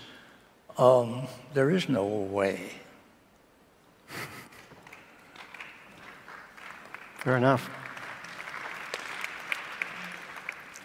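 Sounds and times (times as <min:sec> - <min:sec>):
speech: 0:00.8 - 0:02.9, 0:07.2 - 0:07.8
scattered applause: 0:04.6 - 0:10.8.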